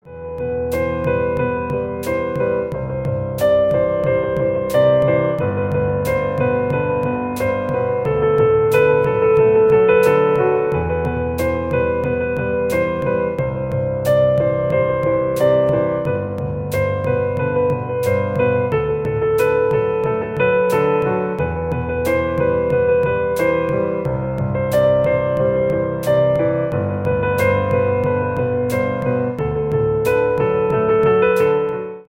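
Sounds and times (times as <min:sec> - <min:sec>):
piano cover: 0:00.0 - 0:32.0.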